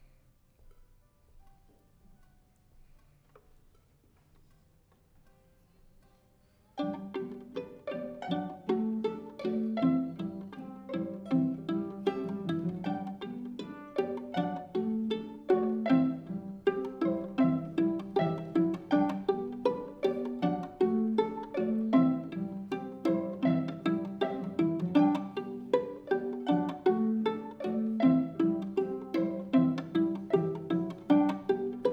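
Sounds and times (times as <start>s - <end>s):
violin: 6.7s - 31.9s.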